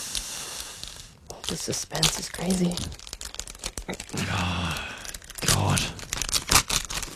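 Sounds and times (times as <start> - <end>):
speech: 1.5 - 3.0, 3.9 - 6.1
paper envelope being torn open: 2.1 - 7.1.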